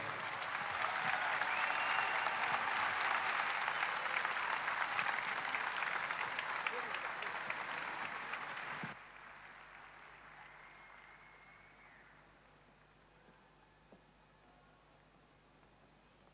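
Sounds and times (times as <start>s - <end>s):
loud applause from a plaza crowd: 0.0s - 12.3s.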